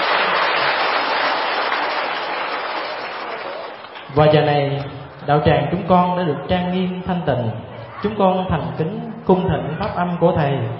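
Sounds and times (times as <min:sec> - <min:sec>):
audience applause at a Buddhist dharma assembly in a monastery lecture hall: 0:00.0 - 0:04.2
speech: 0:04.2 - 0:10.7.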